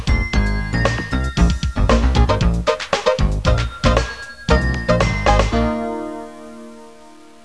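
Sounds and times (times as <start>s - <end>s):
business-style ringtone: 0.1s - 5.9s.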